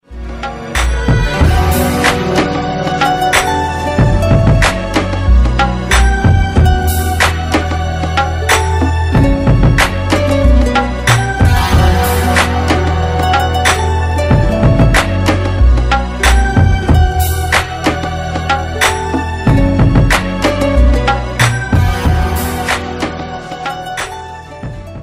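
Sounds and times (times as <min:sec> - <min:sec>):
instrumental music slowing down: 0:00.1 - 0:25.0.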